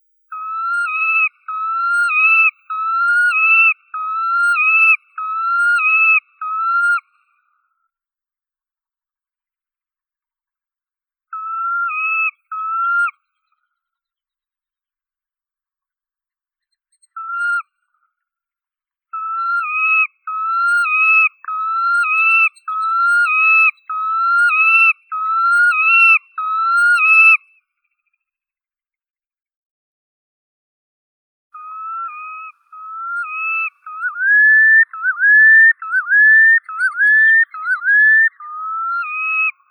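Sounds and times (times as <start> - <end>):
red knot Calidris canutus calling: 0.3 - 7.2, 11.3 - 13.2, 19.2 - 27.4, 31.6 - 39.6.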